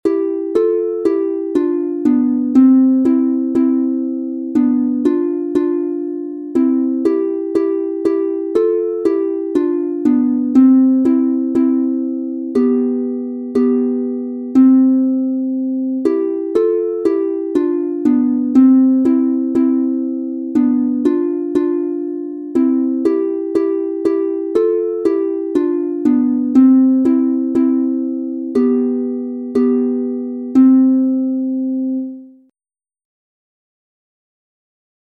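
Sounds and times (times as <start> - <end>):
two-voice harp playing in C major: 0.0 - 32.3.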